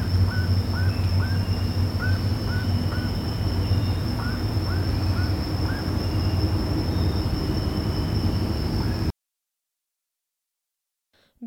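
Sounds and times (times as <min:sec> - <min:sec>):
bird calls of short hooked notes: 0:00.0 - 0:09.1.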